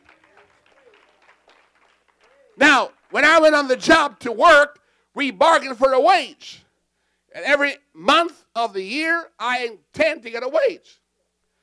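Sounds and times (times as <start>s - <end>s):
audience clapping hands in a reverberant room: 0.0s - 3.9s
speech: 2.6s - 6.6s, 7.3s - 11.0s.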